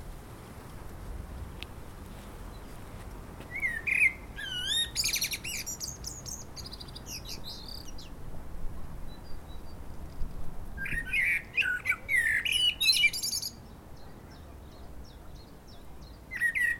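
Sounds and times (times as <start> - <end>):
common blackbird Turdus merula singing: 3.4 - 8.2, 10.8 - 16.7.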